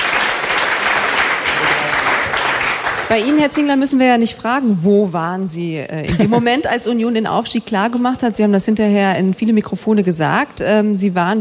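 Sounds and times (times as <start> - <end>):
audience applause at a Union Berlin football club event: 0.0 - 3.6
speech: 3.1 - 11.3.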